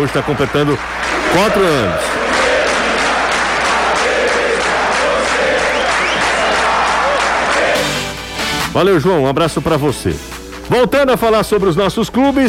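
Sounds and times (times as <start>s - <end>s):
speech: 0.0s - 2.3s, 8.8s - 12.4s
stadium fans clapping: 0.0s - 8.8s.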